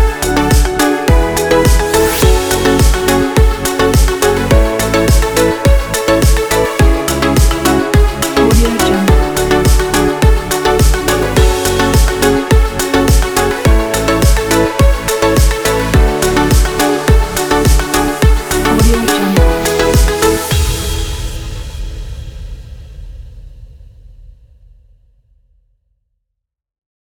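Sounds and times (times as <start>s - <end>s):
upbeat fashion music: 0.0s - 20.9s.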